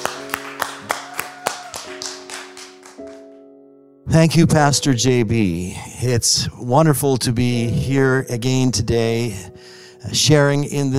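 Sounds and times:
church audience clapping to welcome a guest pastor: 0:00.0 - 0:03.4
speech: 0:04.1 - 0:10.9.

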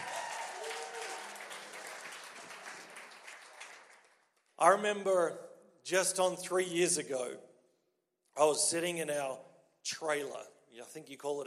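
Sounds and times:
crowd cheering: 0:00.0 - 0:04.2
crowd clapping: 0:00.0 - 0:04.8
speech: 0:04.6 - 0:07.5, 0:08.4 - 0:11.4.

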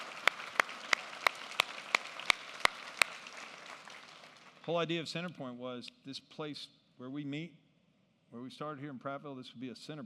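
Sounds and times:
round of applause claps: 0:00.0 - 0:04.8
speech: 0:04.7 - 0:07.6, 0:08.3 - 0:10.0.

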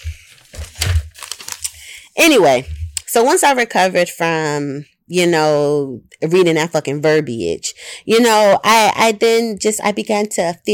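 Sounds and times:
paper page being flipped: 0:00.0 - 0:03.0
speech: 0:02.2 - 0:10.7.

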